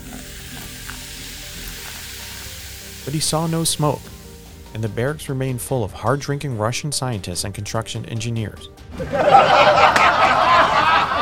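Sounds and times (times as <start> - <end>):
low hiss of uranium reacting to acid: 0.0 - 5.8
speech: 3.1 - 4.1, 4.7 - 10.2
laughter: 8.9 - 11.2.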